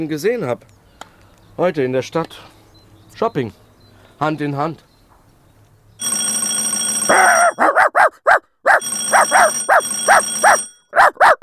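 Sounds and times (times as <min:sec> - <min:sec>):
speech: 0:00.0 - 0:00.8, 0:01.6 - 0:02.6, 0:03.2 - 0:03.6, 0:04.2 - 0:04.9
high electronic ringing: 0:06.0 - 0:07.7, 0:08.8 - 0:10.9
dog barking: 0:07.1 - 0:11.4.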